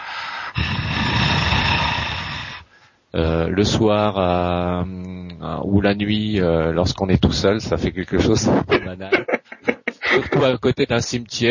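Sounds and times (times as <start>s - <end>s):
barn owl's eerie hissing breath: 0.0s - 3.0s
speech: 3.1s - 11.4s
laughter: 8.7s - 10.6s.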